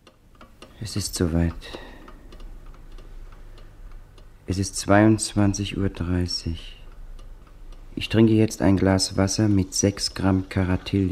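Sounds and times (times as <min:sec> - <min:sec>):
alarm clock ticking: 0:00.0 - 0:10.5
low constant hum: 0:00.0 - 0:11.0
speech: 0:00.8 - 0:01.9, 0:04.5 - 0:06.8, 0:08.0 - 0:11.0.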